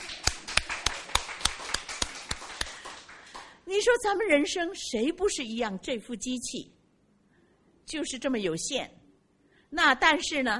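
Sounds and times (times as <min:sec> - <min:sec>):
audience clapping in unison: 0:00.0 - 0:03.6
speech: 0:03.7 - 0:06.8, 0:07.9 - 0:09.0, 0:09.7 - 0:10.5.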